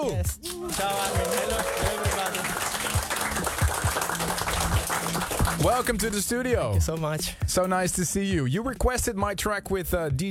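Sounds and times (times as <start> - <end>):
speech: 0.0 - 2.0, 5.6 - 10.3
studio audience in Amsterdam applauding: 0.0 - 6.1.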